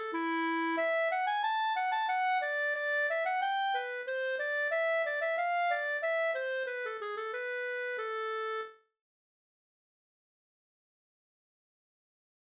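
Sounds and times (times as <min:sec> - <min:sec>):
polska folk dance tune in A minor: 0:00.0 - 0:08.7.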